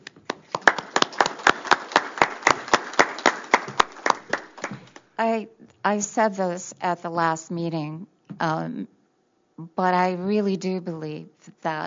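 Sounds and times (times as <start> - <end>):
round of applause: 0.0 - 5.1
speech: 5.2 - 9.0, 9.6 - 11.8.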